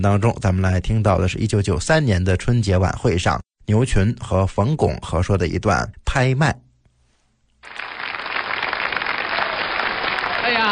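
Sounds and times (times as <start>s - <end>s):
speech: 0.0s - 6.6s
audience applause: 7.6s - 10.7s.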